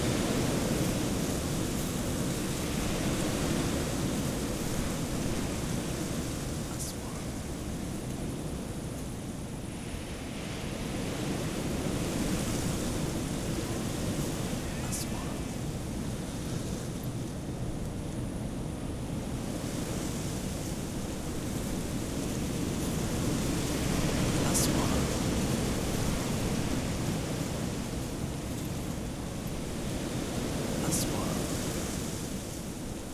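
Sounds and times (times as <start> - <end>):
desert ambience: 0.0 - 33.1.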